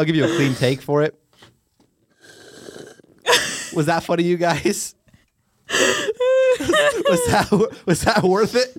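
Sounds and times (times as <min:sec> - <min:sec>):
speech: 0:00.0 - 0:01.5, 0:03.3 - 0:05.0, 0:06.8 - 0:08.7
slurping the last of a milkshake through a straw: 0:02.1 - 0:03.2
laughter: 0:06.2 - 0:08.5.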